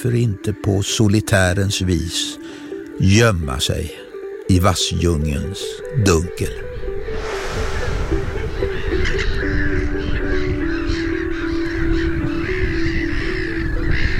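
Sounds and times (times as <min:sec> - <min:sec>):
speech: 0:00.0 - 0:06.7
black-headed gull colony calling: 0:08.1 - 0:14.1.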